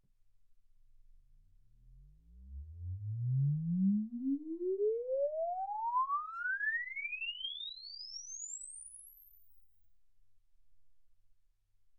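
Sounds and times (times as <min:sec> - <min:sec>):
exponential sine sweep from 10 Hz to 24 kHz: 0:02.9 - 0:09.7.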